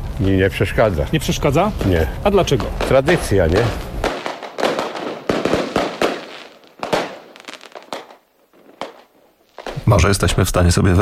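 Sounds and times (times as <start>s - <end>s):
fireworks exploding: 0.0s - 10.4s
speech: 0.2s - 3.9s, 9.9s - 11.0s.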